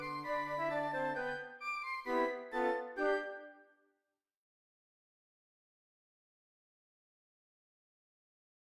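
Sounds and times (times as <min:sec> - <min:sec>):
flute ensemble: 0:00.0 - 0:03.6.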